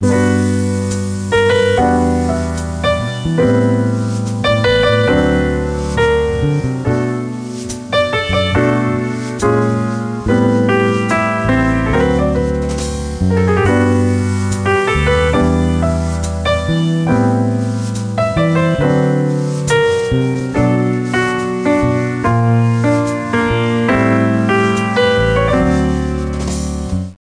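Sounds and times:
jazz music: 0.0 - 27.2.

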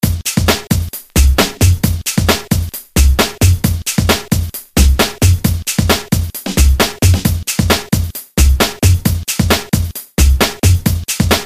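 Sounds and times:
groove music: 0.0 - 11.4.

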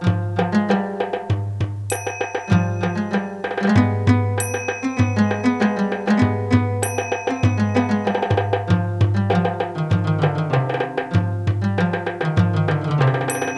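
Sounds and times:
music: 0.0 - 13.5.

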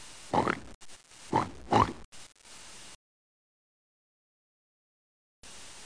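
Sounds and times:
pig: 0.3 - 0.7, 1.3 - 2.0.

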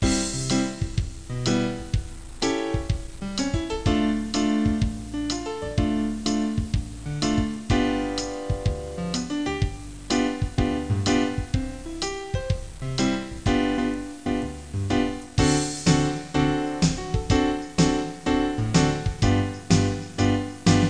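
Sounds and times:
music: 0.0 - 20.8.

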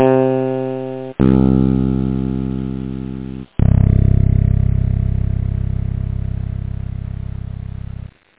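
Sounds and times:
fingered bass guitar: 0.0 - 8.2.

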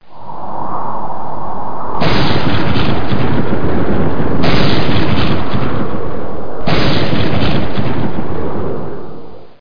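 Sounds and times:
storm: 0.0 - 9.5.

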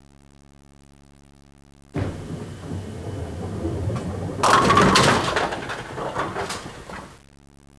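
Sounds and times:
bowling strike: 2.0 - 7.2.

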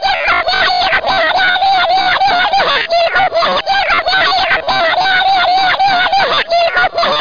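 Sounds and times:
angry vocalizations: 0.0 - 7.1
laughter: 0.0 - 7.1.

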